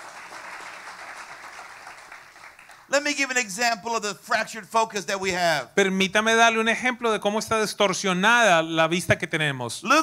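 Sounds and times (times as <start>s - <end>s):
audience applause: 0.0s - 2.9s
speech: 2.9s - 10.0s.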